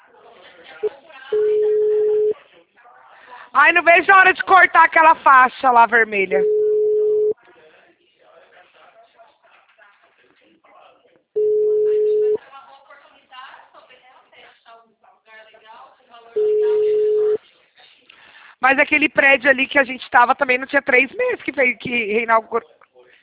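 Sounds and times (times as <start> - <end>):
telephone busy tone after a dropped call: 1.3 - 2.4, 6.4 - 7.4, 11.4 - 12.4, 16.4 - 17.4
speech: 3.7 - 6.6, 18.7 - 22.8.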